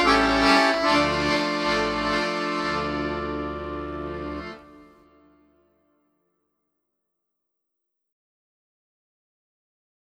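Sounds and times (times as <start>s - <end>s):
music: 0.0s - 6.1s.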